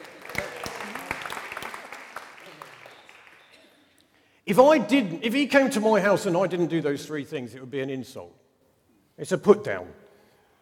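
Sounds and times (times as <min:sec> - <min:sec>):
audience round of applause: 0:00.0 - 0:03.8
speech: 0:04.5 - 0:08.4, 0:09.2 - 0:10.0.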